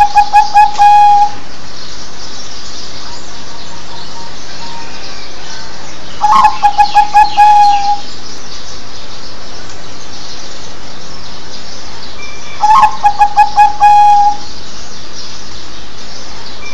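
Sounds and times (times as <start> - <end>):
zebra dove cooing song: 0.0 - 1.4, 6.2 - 8.1, 12.6 - 14.4.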